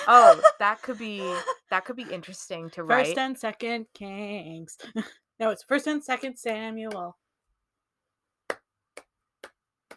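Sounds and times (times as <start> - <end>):
speech: 0.0 - 7.2
hand claps: 6.2 - 7.1, 8.4 - 9.9.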